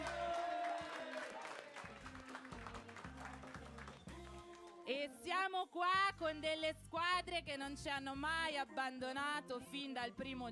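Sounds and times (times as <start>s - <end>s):
audience applause: 0.0s - 4.7s
speech: 4.9s - 10.5s.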